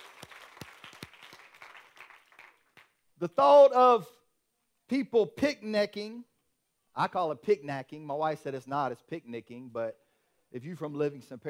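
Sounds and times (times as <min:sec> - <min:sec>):
audience applause: 0:00.0 - 0:02.9
sharp loud claps: 0:00.0 - 0:03.0
speech: 0:03.2 - 0:04.2, 0:04.9 - 0:06.3, 0:07.0 - 0:11.4.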